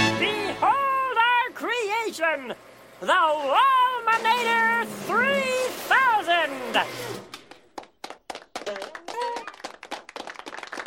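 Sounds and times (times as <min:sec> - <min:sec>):
voices calling out: 0:00.0 - 0:07.3
speech: 0:01.6 - 0:07.4
small group clapping: 0:07.3 - 0:10.8.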